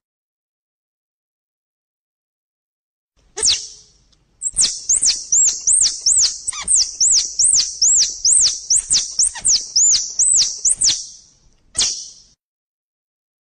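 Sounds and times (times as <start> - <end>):
squirrel chattering: 4.4 - 11.2.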